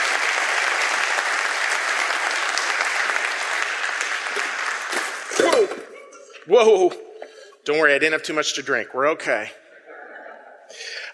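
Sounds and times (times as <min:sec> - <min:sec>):
crowd applauding: 0:00.0 - 0:06.0
laughter: 0:05.7 - 0:06.5, 0:09.6 - 0:11.1
speech: 0:06.5 - 0:07.0, 0:07.7 - 0:09.6.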